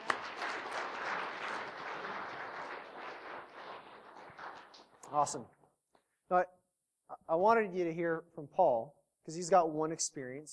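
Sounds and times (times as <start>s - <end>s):
audience applause: 0.0s - 5.0s
speech: 5.1s - 5.6s, 6.3s - 6.6s, 7.3s - 10.5s.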